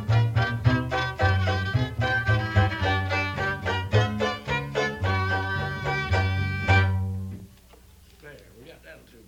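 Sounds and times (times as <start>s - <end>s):
violin session: 0.0s - 7.2s.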